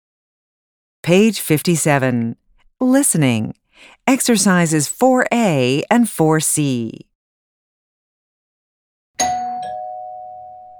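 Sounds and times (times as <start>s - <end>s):
speech: 1.0s - 7.1s
doorbell chime: 9.2s - 10.7s.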